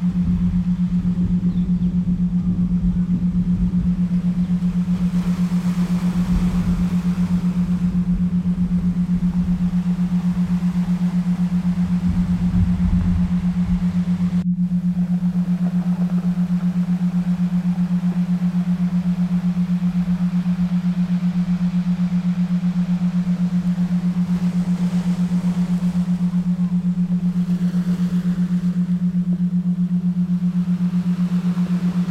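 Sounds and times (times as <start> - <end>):
7.83 Hz Schumann resonance isochronic tones: 0.0 - 32.1
relaxing ocean sounds: 0.0 - 32.1.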